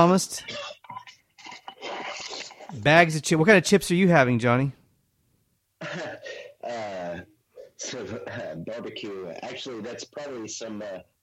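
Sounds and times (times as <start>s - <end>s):
speech: 0.0s - 0.7s, 2.7s - 4.8s, 7.8s - 11.1s
person coughing: 0.4s - 2.7s, 5.8s - 8.6s
person clearing throat: 0.4s - 2.8s, 5.8s - 8.6s.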